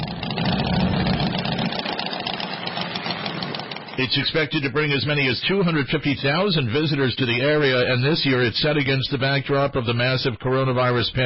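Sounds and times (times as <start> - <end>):
motorcycle engines idling at a rally: 0.0 - 7.8
speech: 4.0 - 11.2.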